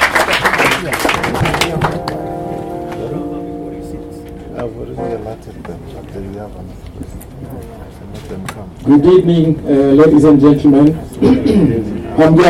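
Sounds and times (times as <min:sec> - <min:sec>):
round of applause: 0:00.0 - 0:02.2
speech: 0:05.5 - 0:12.4.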